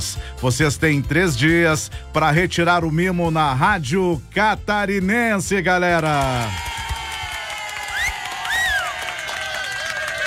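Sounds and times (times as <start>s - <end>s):
speech: 0.0s - 6.6s
audience applause: 6.2s - 10.2s.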